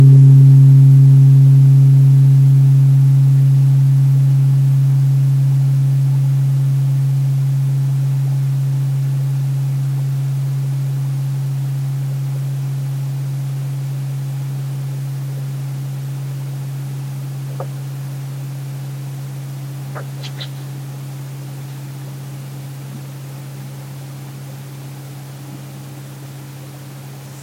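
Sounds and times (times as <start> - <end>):
weighted om tuning forks humming: 0.0 - 27.4.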